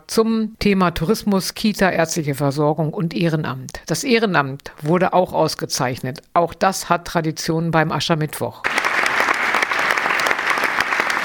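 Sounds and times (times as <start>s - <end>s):
speech: 0.2s - 8.8s
audience applause at an Ash Wednesday gathering honouring volunteers and an athlete: 8.6s - 11.2s.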